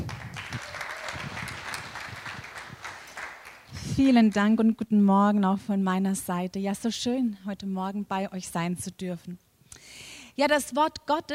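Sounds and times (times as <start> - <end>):
applause: 0.0 - 4.5
speech: 4.0 - 9.4, 10.4 - 11.3.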